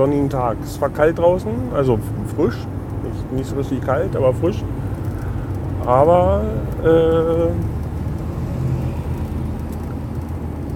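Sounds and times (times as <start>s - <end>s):
speech: 0.0s - 4.8s, 5.8s - 7.8s
motorcycle overtaking on the road: 0.0s - 10.7s.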